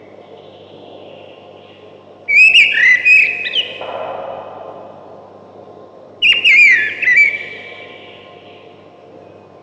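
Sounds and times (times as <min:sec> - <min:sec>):
thrush singing loud whistled phrases: 0:02.3 - 0:03.8, 0:06.2 - 0:08.5.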